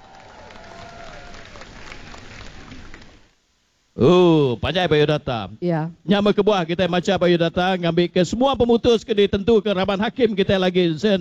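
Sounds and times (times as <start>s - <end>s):
thunderous applause: 0.0s - 3.3s
speech: 4.0s - 11.1s.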